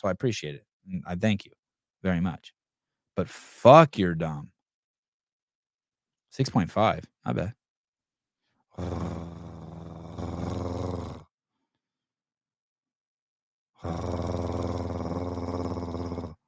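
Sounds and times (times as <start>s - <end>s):
speech: 0.0s - 2.6s, 3.2s - 4.6s, 6.3s - 7.6s, 8.8s - 9.4s, 13.8s - 14.3s
person imitating an earthquake rumble: 8.8s - 11.2s, 13.8s - 16.4s.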